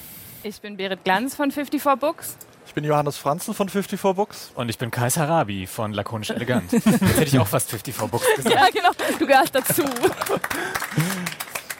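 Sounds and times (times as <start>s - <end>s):
speech: 0.4s - 11.4s
people talking and laughing: 6.2s - 11.6s
scattered hand claps in a small room: 7.7s - 11.7s.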